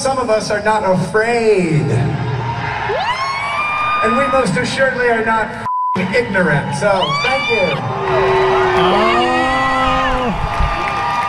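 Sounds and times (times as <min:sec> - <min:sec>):
speech: 0:00.0 - 0:02.3, 0:04.0 - 0:09.3
audience cheering and whooping: 0:02.3 - 0:04.8, 0:06.8 - 0:11.2.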